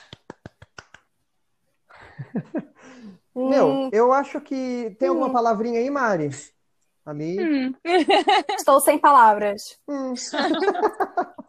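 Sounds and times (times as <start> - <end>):
hands clapping: 0.0 - 1.2
speech: 2.3 - 11.0
laughter: 7.9 - 8.7, 10.2 - 11.4.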